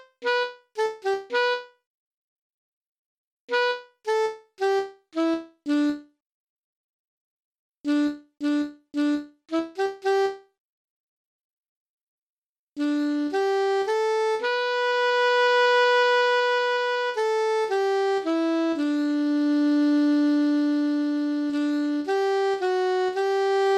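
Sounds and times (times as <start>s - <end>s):
alto saxophone: 0.0s - 1.8s, 3.5s - 6.1s, 7.9s - 10.5s, 12.8s - 23.7s.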